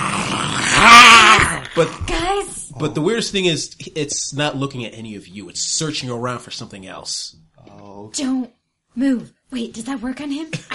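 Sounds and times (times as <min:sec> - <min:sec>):
mighty creature roaring: 0:00.0 - 0:02.1
speech: 0:01.8 - 0:10.7.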